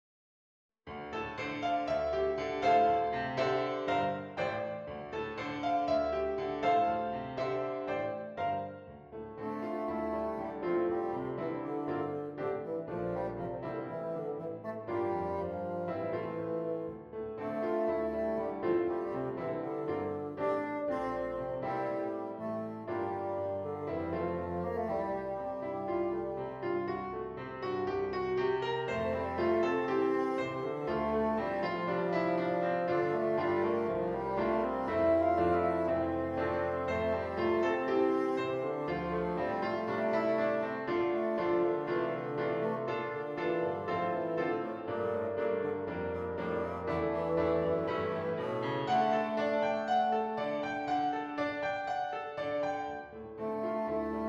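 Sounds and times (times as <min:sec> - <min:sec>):
bassoon: 0:01.3 - 0:54.2.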